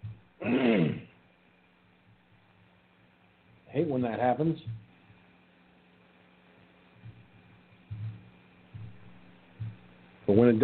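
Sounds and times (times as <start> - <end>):
speech: 0.4 - 1.0, 3.8 - 4.9, 10.3 - 10.6
single cough from a tickle in the throat: 0.4 - 1.1.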